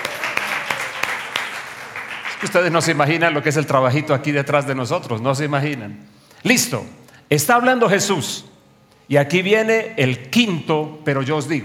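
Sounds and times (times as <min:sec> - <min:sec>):
audience applause: 0:00.0 - 0:03.0
speech: 0:02.4 - 0:08.5, 0:09.1 - 0:11.6.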